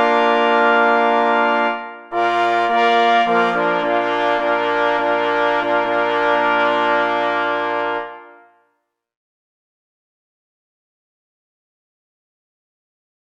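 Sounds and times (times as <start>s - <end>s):
hunting horn fanfare march: 0.0s - 8.7s.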